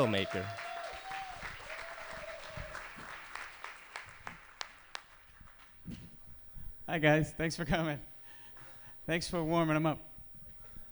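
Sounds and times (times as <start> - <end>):
speech: 0.0 - 0.6, 6.9 - 8.1, 9.1 - 10.1
audience applause: 0.0 - 5.8.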